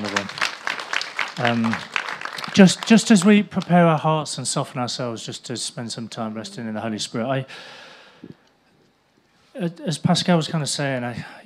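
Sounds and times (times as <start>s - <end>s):
audience clapping: 0.0s - 4.0s
speech: 1.4s - 1.9s, 2.6s - 8.4s, 9.6s - 11.4s
person calling out: 6.2s - 7.1s.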